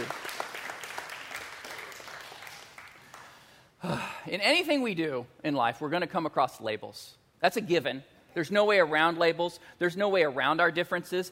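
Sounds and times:
round of applause: 0.0s - 3.6s
speech: 4.2s - 11.3s.

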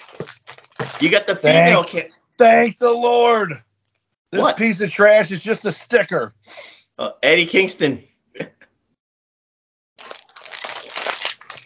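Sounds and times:
plastic wrapper crinkling as a package is unboxed: 0.0s - 1.4s, 10.0s - 11.6s
speech: 1.0s - 3.7s, 4.3s - 8.6s.

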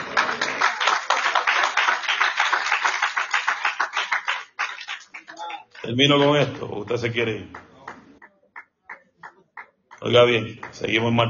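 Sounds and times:
audience applause: 0.0s - 11.2s
speech: 5.9s - 7.6s, 10.0s - 11.2s.

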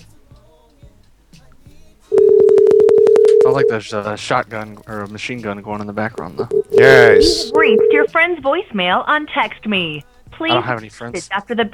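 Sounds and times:
telephone ring tone: 2.1s - 3.8s, 6.4s - 8.1s
speech: 3.6s - 11.7s.

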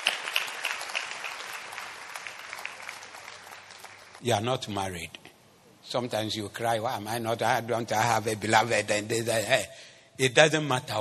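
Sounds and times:
audience applause: 0.0s - 4.2s
speech: 4.2s - 5.2s, 5.9s - 10.9s.

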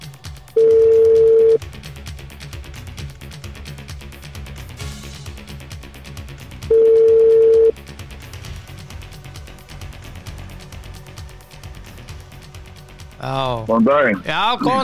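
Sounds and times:
telephone ringback tones while calling a radio show guest: 0.6s - 1.6s, 6.7s - 7.7s
speech: 13.3s - 14.8s.

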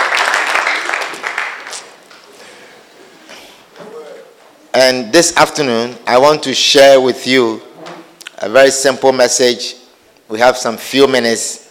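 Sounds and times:
audience clapping hands: 0.0s - 2.3s
speech: 4.8s - 7.7s, 8.4s - 11.6s.

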